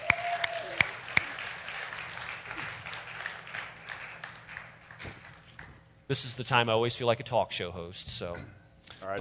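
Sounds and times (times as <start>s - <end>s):
audience applause: 0.0s - 5.5s
speech: 6.1s - 9.1s.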